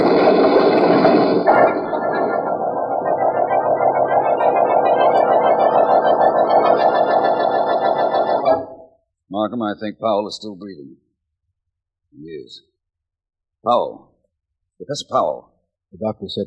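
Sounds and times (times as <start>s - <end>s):
car engine catching and running with a buzzing hum: 0.0s - 8.8s
speech: 9.5s - 11.0s, 13.6s - 14.0s, 14.9s - 16.4s.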